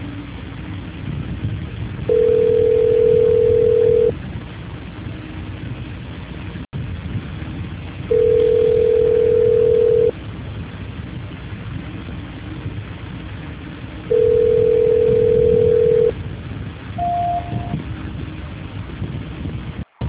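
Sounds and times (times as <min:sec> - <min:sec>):
telephone line tone during a call transfer: 0:02.1 - 0:04.2, 0:08.1 - 0:10.2, 0:14.1 - 0:16.2, 0:17.0 - 0:17.8
short high beep on a telephone line: 0:17.0 - 0:17.8.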